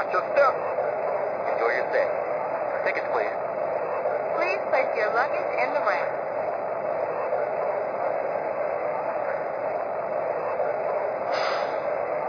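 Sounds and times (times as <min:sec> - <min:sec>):
aerotrain: 0:00.0 - 0:12.2.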